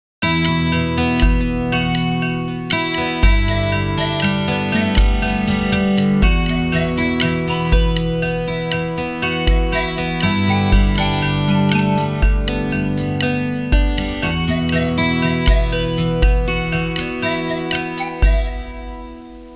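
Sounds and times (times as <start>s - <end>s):
Hawaiian music ringtone: 0.4s - 19.5s.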